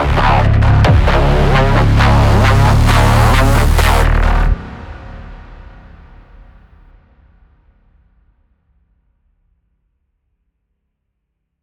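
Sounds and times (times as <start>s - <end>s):
main ambience: 0.0s - 6.3s.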